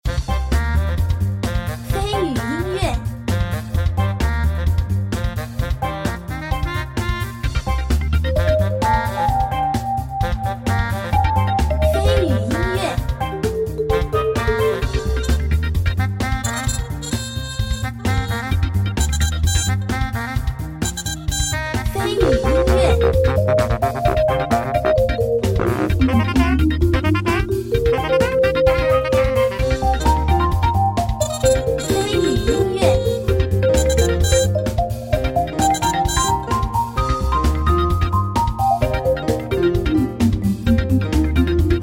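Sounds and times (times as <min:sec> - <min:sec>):
light upbeat casual puzzle game music: 0:00.1 - 0:41.8.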